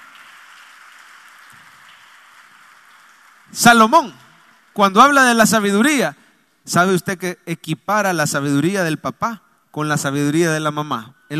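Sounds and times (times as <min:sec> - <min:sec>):
audience applauding: 0:00.0 - 0:04.8
speech: 0:03.5 - 0:04.2, 0:04.8 - 0:11.3.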